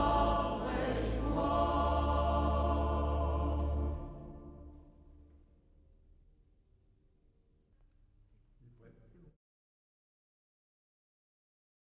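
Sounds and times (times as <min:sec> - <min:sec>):
chanting: 0:00.0 - 0:04.8.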